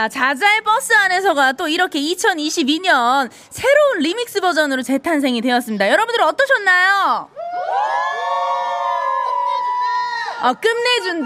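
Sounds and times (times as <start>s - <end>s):
speech: 0.0s - 8.0s, 10.4s - 11.2s
crowd, audience cheering and shouting: 7.4s - 11.2s.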